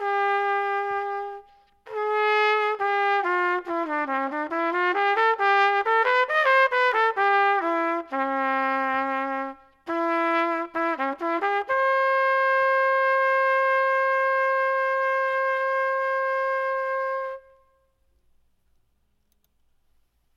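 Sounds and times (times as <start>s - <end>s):
alto sax solo: 0.0s - 17.8s.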